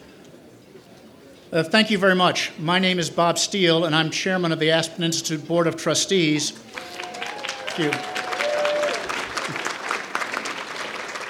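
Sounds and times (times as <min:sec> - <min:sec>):
speech: 0:01.5 - 0:06.6, 0:07.8 - 0:08.1
crowd clapping: 0:06.6 - 0:11.2.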